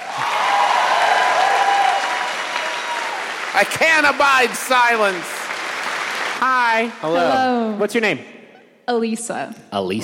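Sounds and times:
audience applause: 0:00.0 - 0:07.2
speech: 0:03.6 - 0:05.3, 0:06.4 - 0:10.0.

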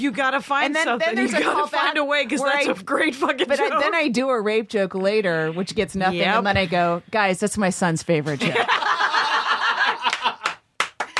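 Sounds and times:
speech: 0:00.0 - 0:08.8
audience chuckling and laughing: 0:08.4 - 0:10.6
couple of people clapping: 0:09.6 - 0:11.1.

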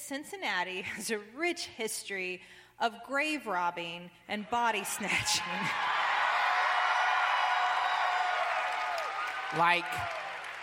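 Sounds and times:
speech: 0:00.1 - 0:06.0, 0:09.5 - 0:10.2
audience cheering: 0:04.8 - 0:10.6
audience applauding: 0:05.6 - 0:10.6.

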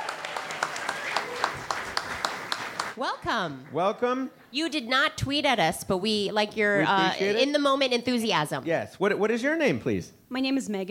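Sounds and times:
crowd noise: 0:00.0 - 0:04.0
audience applause at a live comedy show: 0:00.0 - 0:04.1
speech: 0:03.0 - 0:10.8.

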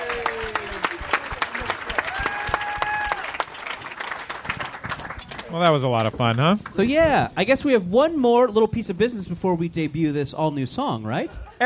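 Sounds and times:
audience applause for a winning contestant at SF Sketchfest comedy show: 0:00.0 - 0:06.5
speech: 0:05.5 - 0:11.6.

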